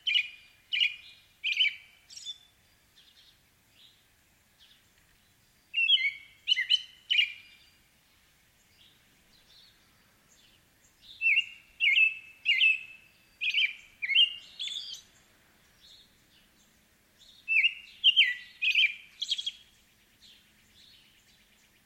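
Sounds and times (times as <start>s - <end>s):
American robin morning songs: 0.0s - 21.8s.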